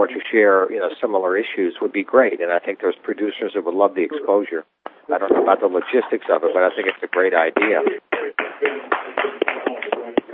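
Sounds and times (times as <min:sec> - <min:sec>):
speech: 0:00.0 - 0:08.9
hand claps leaking into a conference call line: 0:06.8 - 0:10.3.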